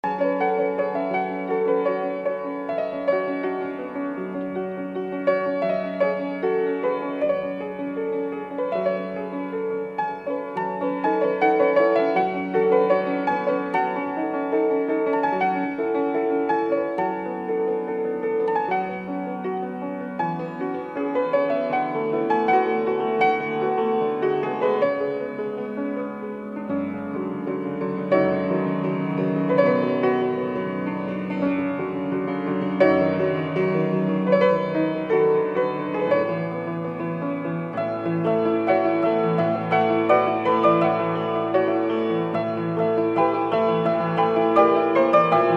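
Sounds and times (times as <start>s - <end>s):
Vietnamese instrumental music: 0.0s - 45.5s.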